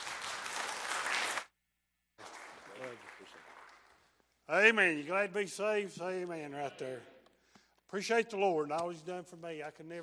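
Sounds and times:
church congregation applauding a speaker: 0.0 - 4.8
speech: 4.5 - 7.1, 7.9 - 10.0.

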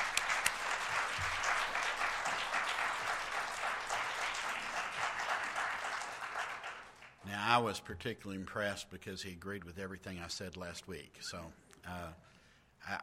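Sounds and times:
crowd applauding: 0.0 - 7.3
speech: 7.6 - 13.0.

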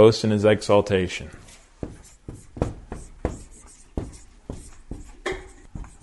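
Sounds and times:
speech: 0.0 - 1.4
pen writing out a Bible verse by hand: 1.8 - 6.0.

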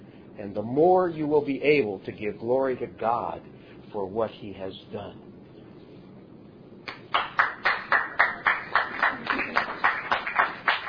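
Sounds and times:
speech: 0.4 - 5.3
audience applause: 7.0 - 10.8.

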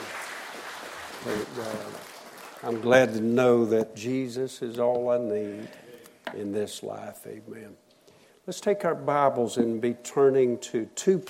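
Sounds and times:
audience applauding: 0.0 - 3.2
speech: 1.2 - 7.8, 8.5 - 11.2.

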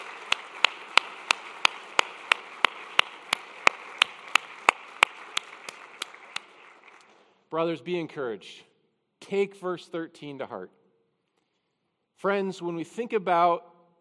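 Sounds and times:
audience clapping in unison: 0.0 - 7.5
speech: 7.5 - 8.7, 9.3 - 10.8, 12.2 - 13.7.

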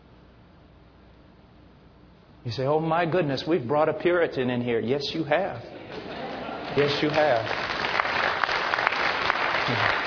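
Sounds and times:
speech: 2.4 - 6.1, 6.8 - 7.6, 9.7 - 10.0
church congregation clapping: 5.9 - 10.0.

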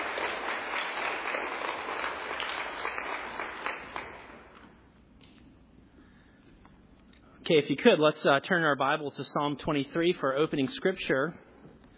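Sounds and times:
audience applause: 0.0 - 4.6
speech: 7.5 - 11.5.

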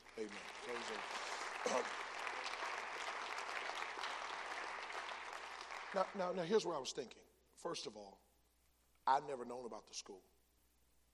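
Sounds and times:
audience applause: 0.0 - 6.7
speech: 0.2 - 2.1, 5.9 - 8.2, 9.1 - 10.3.

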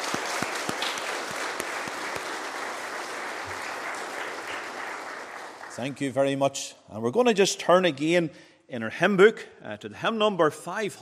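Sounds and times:
audience applause: 0.0 - 6.1
speech: 5.8 - 11.0.

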